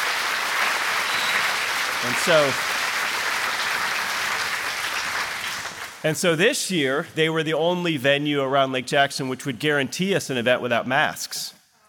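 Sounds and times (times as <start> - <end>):
audience applause: 0.0 - 6.0
speech: 2.0 - 2.8, 6.0 - 11.6.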